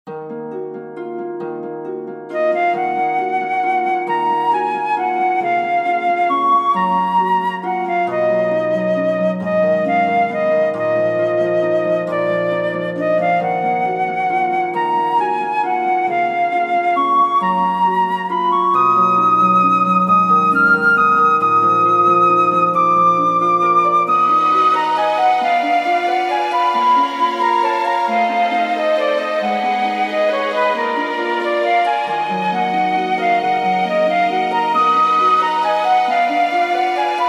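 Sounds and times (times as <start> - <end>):
waltz music: 0.0 - 37.2.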